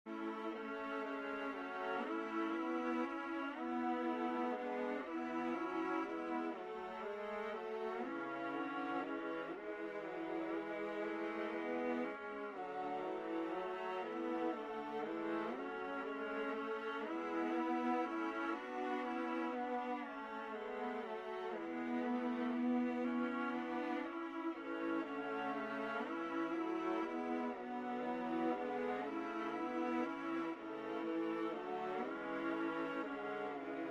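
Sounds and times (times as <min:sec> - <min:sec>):
viola playing a hymn in A major: 0:00.1 - 0:33.8.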